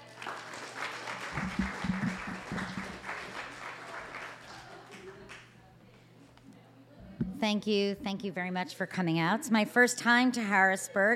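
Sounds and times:
audience applauding to welcome a visiting doctor in Harrisburg: 0.0 - 5.6
speech: 7.4 - 11.1.

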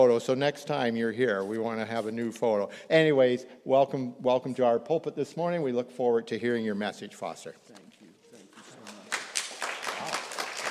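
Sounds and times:
speech: 0.0 - 7.8
audience applauding: 8.6 - 10.6.

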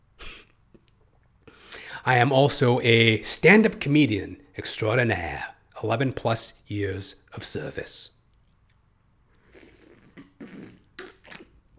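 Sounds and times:
speech: 1.5 - 8.2
person sipping hot coffee: 9.4 - 11.6.

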